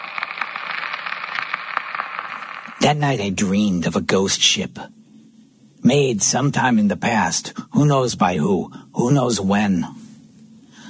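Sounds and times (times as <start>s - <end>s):
small irregular crackles and pops: 0.0s - 2.9s
radio static hiss: 0.0s - 7.7s
speech: 2.8s - 5.0s, 5.8s - 10.0s.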